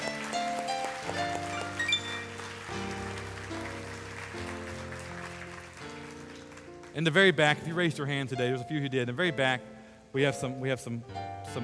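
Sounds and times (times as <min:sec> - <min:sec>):
sustained keyboard or organ chords: 0:00.0 - 0:04.1
audience clapping: 0:00.0 - 0:07.5
speech: 0:07.0 - 0:11.6.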